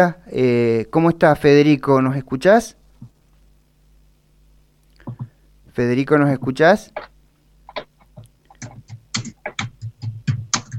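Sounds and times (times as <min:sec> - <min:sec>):
speech: 0:00.0 - 0:02.8, 0:05.8 - 0:07.1
computer keyboard typing: 0:07.7 - 0:10.7.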